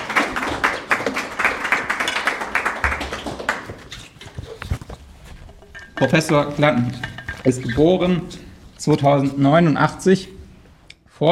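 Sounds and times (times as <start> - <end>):
audience clapping: 0.0 - 4.3
speech: 6.0 - 10.3, 11.2 - 11.3.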